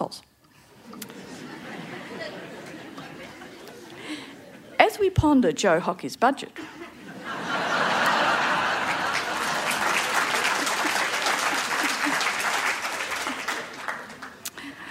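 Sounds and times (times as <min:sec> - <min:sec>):
speech: 0:00.0 - 0:00.3, 0:05.0 - 0:06.8
laughter: 0:00.8 - 0:04.8, 0:06.6 - 0:14.9
audience clapping: 0:07.5 - 0:14.7.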